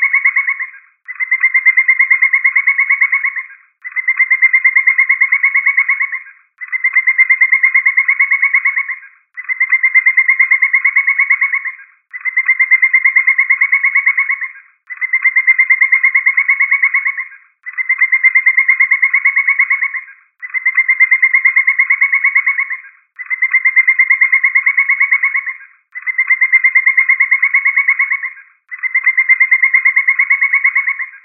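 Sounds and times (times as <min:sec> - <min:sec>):
woodpecker calling in rapid series of evenly spaced notes: 0:00.0 - 0:31.2.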